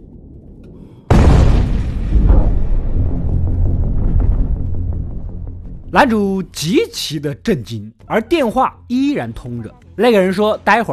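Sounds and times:
distant muffled explosion of a bridge: 0:00.0 - 0:05.9
speech: 0:06.0 - 0:10.9.

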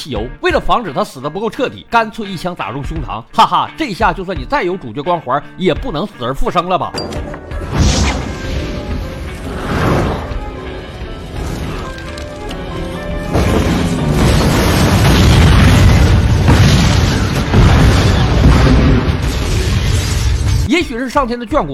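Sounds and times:
speech: 0:00.0 - 0:07.5, 0:21.0 - 0:21.7
explosion: 0:07.6 - 0:10.4, 0:13.2 - 0:20.7.

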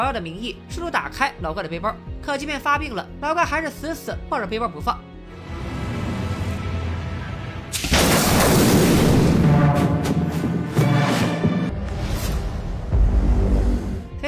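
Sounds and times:
speech: 0:00.0 - 0:05.1
low rumble: 0:05.4 - 0:14.2
bomb explosion: 0:07.8 - 0:11.7.

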